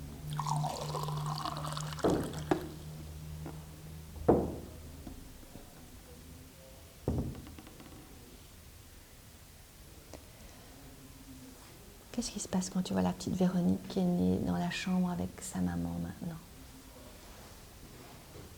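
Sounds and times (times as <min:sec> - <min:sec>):
water poured out for drinking: 0:00.2 - 0:03.1
speech: 0:12.2 - 0:16.5.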